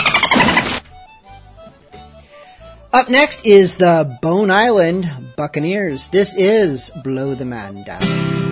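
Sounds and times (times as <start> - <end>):
dolphin noises: 0.0 - 0.8
speech: 2.9 - 8.4.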